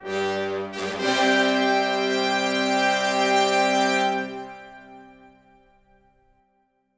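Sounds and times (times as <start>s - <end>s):
music fanfare: 0.0s - 5.5s.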